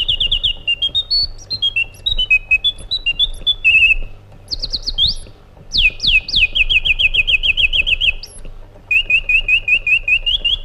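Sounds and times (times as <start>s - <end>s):
white-eared bulbul singing: 0.0s - 10.6s.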